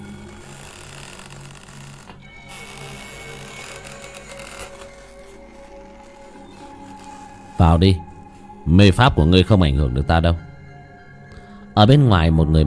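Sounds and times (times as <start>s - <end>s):
old door slowly creaking open: 0.0s - 8.6s
speech: 7.6s - 8.1s, 8.7s - 10.5s, 11.8s - 12.6s.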